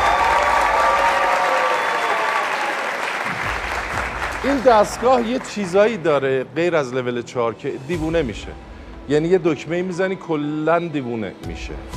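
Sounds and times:
studio audience applause at a show: 0:00.0 - 0:06.1
speech: 0:04.4 - 0:11.9.

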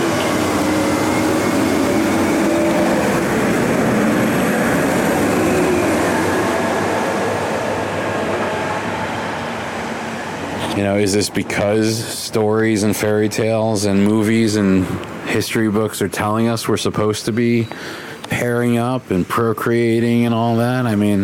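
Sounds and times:
loud truck rumbling past: 0:00.0 - 0:13.1
speech: 0:10.8 - 0:21.2.

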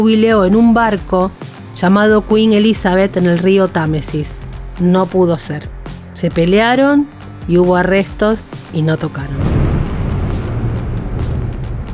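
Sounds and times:
speech: 0:00.0 - 0:09.5
thunder: 0:09.4 - 0:11.9.

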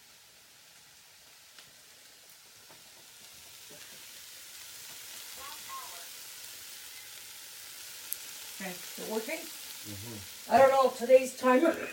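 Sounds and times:
onions sautéing in a pan: 0:00.0 - 0:11.9
speech: 0:08.6 - 0:11.9
faint murmurs: 0:09.9 - 0:10.3.

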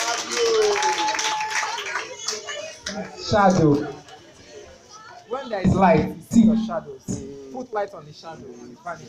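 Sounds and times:
audience clapping: 0:00.0 - 0:03.1
speech: 0:03.3 - 0:04.0, 0:05.4 - 0:09.0.

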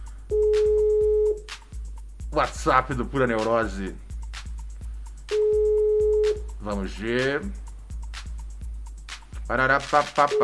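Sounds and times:
telephone ringback tone from an unanswered outgoing call: 0:00.3 - 0:01.4, 0:05.3 - 0:06.4
speech: 0:02.4 - 0:04.0, 0:06.6 - 0:07.6, 0:09.5 - 0:10.4.

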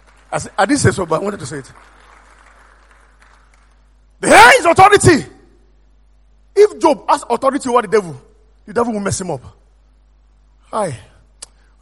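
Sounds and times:
audience clapping: 0:00.0 - 0:04.0
speech: 0:00.3 - 0:02.0, 0:04.2 - 0:05.4, 0:06.6 - 0:09.6, 0:10.7 - 0:11.1.

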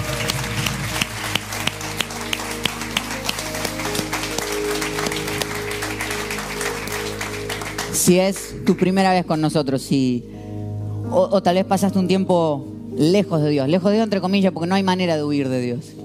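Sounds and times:
audience applause: 0:00.0 - 0:08.8
speech: 0:08.0 - 0:10.4, 0:11.1 - 0:16.0.

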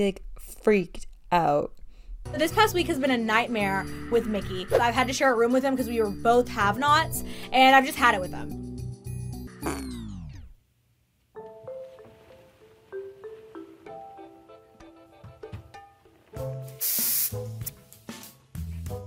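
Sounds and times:
speech: 0:00.0 - 0:08.6
music: 0:02.2 - 0:10.5, 0:11.4 - 0:19.0
aerosol air freshener spray hiss: 0:16.6 - 0:18.0.

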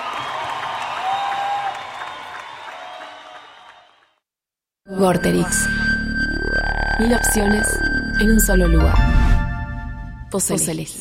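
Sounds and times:
audience applause: 0:00.0 - 0:04.2
speech: 0:05.0 - 0:05.9, 0:07.0 - 0:09.2, 0:10.3 - 0:10.9.

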